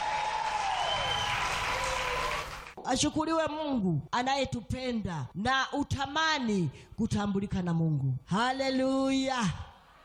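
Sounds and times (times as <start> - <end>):
church congregation clapping for Jesus: 0.0 - 2.8
speech: 2.9 - 9.7.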